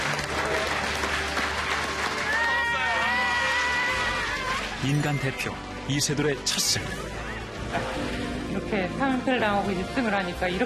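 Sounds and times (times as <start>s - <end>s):
audience applause for Lee Sedol's win over AlphaGo: 0.0s - 5.7s
speech: 4.8s - 10.6s.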